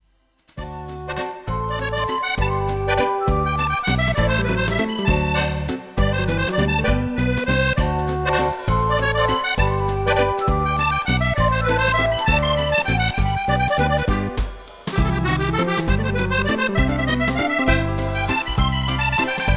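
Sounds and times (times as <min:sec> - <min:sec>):
musette waltz: 0:00.6 - 0:19.5.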